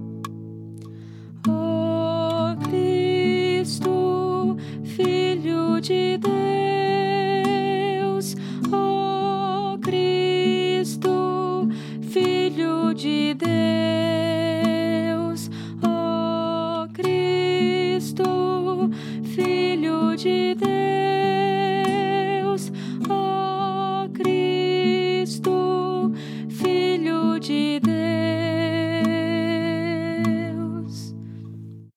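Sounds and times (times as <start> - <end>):
soprano singing: 1.4 - 31.2.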